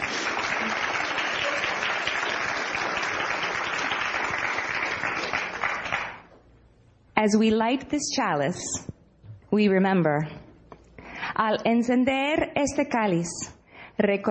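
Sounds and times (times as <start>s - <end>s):
audience applause: 0.0s - 6.3s
speech: 7.2s - 8.9s, 9.5s - 10.4s, 11.4s - 14.2s.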